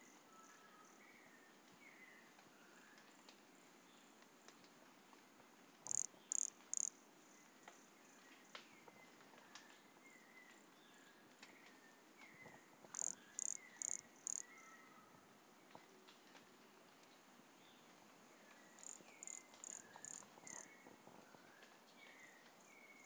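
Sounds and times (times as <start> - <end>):
quiet hiss: 0.0 - 23.0
pumpkin toadlet buzzy calls: 5.8 - 6.9, 12.9 - 14.5, 18.8 - 20.7.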